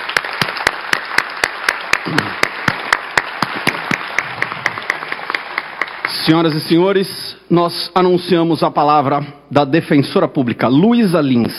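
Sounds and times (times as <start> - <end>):
audience applause: 0.0 - 6.6
speech: 2.0 - 2.5, 6.3 - 11.5.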